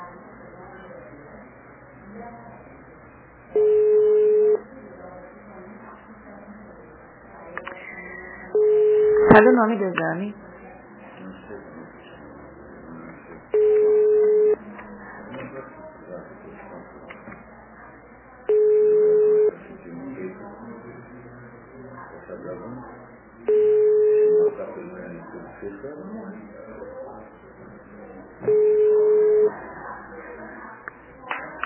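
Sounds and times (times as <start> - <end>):
telephone ringback tones of a call to a notary office: 3.6 - 4.6, 8.6 - 9.3, 13.6 - 14.6, 18.5 - 19.5, 23.5 - 24.6, 28.5 - 29.5
speech: 9.3 - 10.4.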